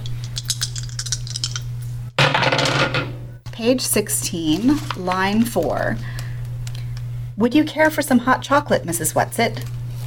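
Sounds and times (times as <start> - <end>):
low steady hum: 0.0 - 10.0
dice rattling: 0.4 - 1.6
speech: 3.6 - 6.2, 7.4 - 9.8.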